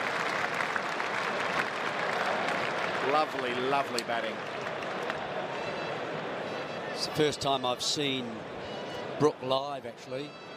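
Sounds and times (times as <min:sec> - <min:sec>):
cricket crowd applauding a batting milestone: 0:00.0 - 0:07.1
speech: 0:03.1 - 0:04.7, 0:07.0 - 0:10.4.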